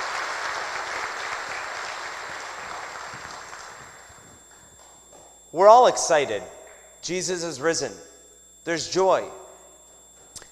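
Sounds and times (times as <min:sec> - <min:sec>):
audience clapping: 0:00.0 - 0:04.9
speech: 0:05.5 - 0:09.4.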